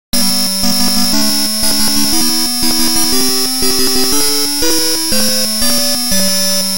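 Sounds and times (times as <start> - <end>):
jingle: 0.2 - 6.7.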